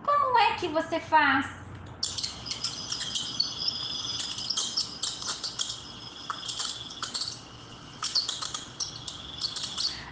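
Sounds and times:
speech: 0:00.6 - 0:02.2
mouse squeaking softly: 0:02.0 - 0:10.1.

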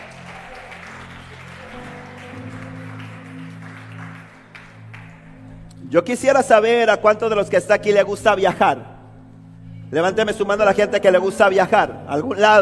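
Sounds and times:
audience applause: 0:00.0 - 0:05.6
speech: 0:05.9 - 0:08.9, 0:09.9 - 0:12.6.

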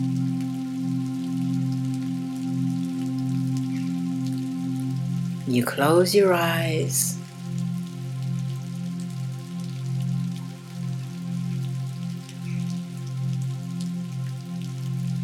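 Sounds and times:
low sustained hum: 0:00.0 - 0:06.0
steady rainfall: 0:00.0 - 0:15.2
speech: 0:05.5 - 0:07.2.

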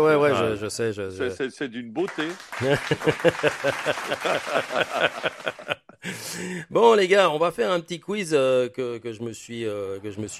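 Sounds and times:
speech: 0:00.0 - 0:10.3
applause: 0:02.0 - 0:05.8
laughter: 0:02.6 - 0:06.5.

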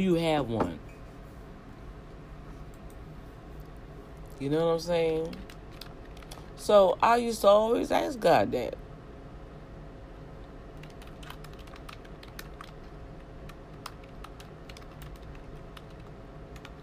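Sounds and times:
speech: 0:00.0 - 0:00.9, 0:04.4 - 0:05.5, 0:06.6 - 0:08.8
low hum: 0:00.0 - 0:16.8
typing on a computer keyboard: 0:05.1 - 0:06.5, 0:10.8 - 0:16.8.

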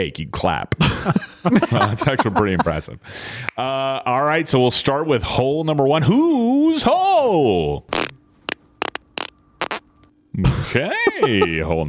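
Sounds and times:
speech: 0:00.0 - 0:08.0, 0:10.4 - 0:11.8
low steady hum: 0:00.0 - 0:11.8
laughter: 0:00.8 - 0:03.0, 0:10.8 - 0:11.7
fart: 0:07.9 - 0:09.9.

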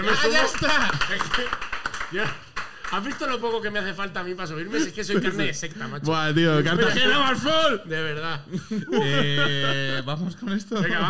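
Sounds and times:
audience applause: 0:00.0 - 0:03.4
speech: 0:00.0 - 0:11.0
laughter: 0:04.6 - 0:06.0, 0:08.3 - 0:11.0.

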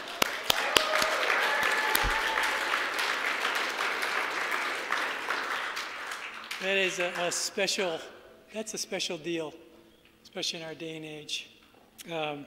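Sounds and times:
audience applause for fathers: 0:00.0 - 0:07.4
speech: 0:06.6 - 0:09.6, 0:10.3 - 0:12.4.

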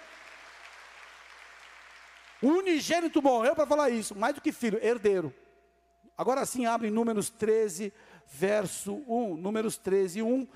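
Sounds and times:
crowd audience applauding: 0:00.0 - 0:03.0
speech: 0:02.4 - 0:05.4, 0:06.2 - 0:10.5.

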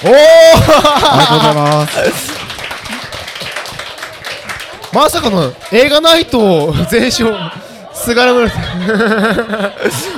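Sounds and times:
speech: 0:00.0 - 0:02.5, 0:04.9 - 0:10.1
audience clapping: 0:00.0 - 0:07.4
laughter: 0:00.4 - 0:03.4, 0:06.8 - 0:10.1.

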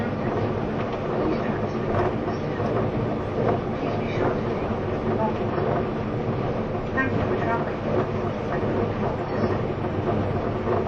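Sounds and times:
E257 series Azusa train running rumble between Kofu and Matsumoto: 0:00.0 - 0:10.8.

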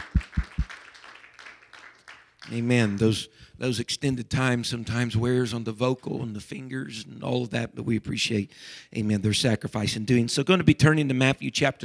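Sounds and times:
audience applauding musicians and singers: 0:00.0 - 0:03.1
speech: 0:02.5 - 0:11.8.

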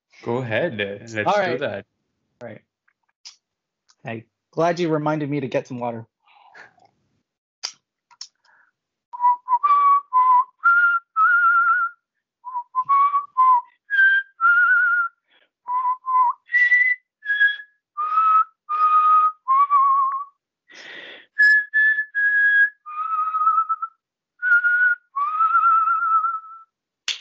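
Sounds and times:
speech: 0:00.2 - 0:02.7, 0:04.0 - 0:06.7
person whistling a tune: 0:09.2 - 0:20.3, 0:21.3 - 0:26.7.

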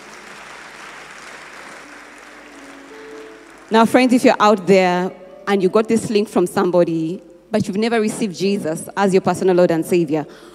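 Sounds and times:
audience clapping: 0:00.0 - 0:04.5
speech: 0:03.7 - 0:10.5.

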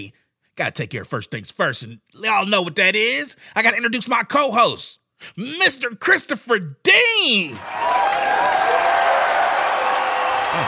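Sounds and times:
speech: 0:00.0 - 0:08.6
studio crowd applauding and cheering: 0:07.6 - 0:10.6
whoops and whistles: 0:10.2 - 0:10.6.

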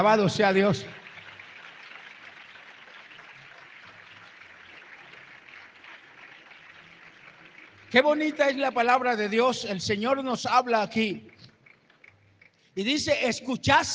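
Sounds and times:
speech: 0:00.0 - 0:01.0, 0:07.9 - 0:11.3, 0:12.8 - 0:13.9
audience applause: 0:00.0 - 0:09.1.

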